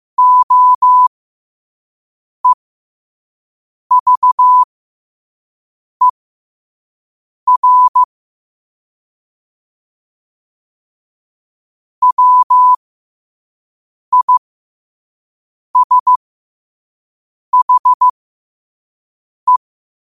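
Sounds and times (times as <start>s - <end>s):
morse code at 5 wpm: 0.2s - 1.1s, 3.9s - 4.7s, 7.5s - 8.1s, 12.0s - 12.8s, 14.1s - 14.4s, 15.8s - 16.2s, 17.6s - 18.1s.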